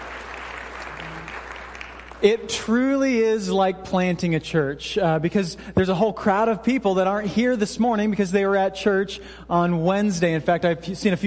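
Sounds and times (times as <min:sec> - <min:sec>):
audience applause: 0:00.0 - 0:02.2
speech: 0:02.2 - 0:11.2.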